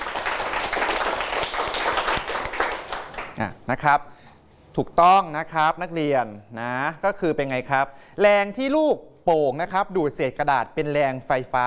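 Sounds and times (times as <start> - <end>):
classroom students clapping for a classmate: 0.0 - 3.4
speech: 3.4 - 4.2, 4.8 - 11.6.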